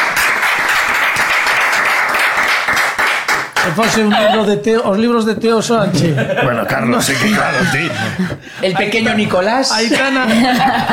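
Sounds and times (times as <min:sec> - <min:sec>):
crowd applause: 0:00.0 - 0:04.1
speech: 0:03.7 - 0:10.9
laughter: 0:03.8 - 0:04.6, 0:05.8 - 0:10.9.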